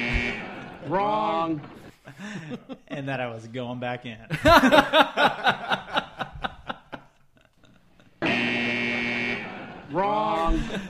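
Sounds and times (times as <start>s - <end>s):
game buzzer buzzing: 0.0s - 1.0s, 8.2s - 10.8s
laughter: 0.0s - 3.2s, 4.3s - 8.2s, 9.5s - 10.8s
speech: 0.9s - 6.0s.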